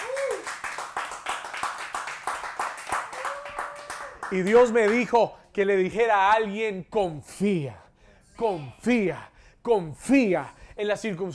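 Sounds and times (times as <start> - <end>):
loud audience applause: 0.0 - 5.0
speech: 4.3 - 7.8, 8.4 - 11.3.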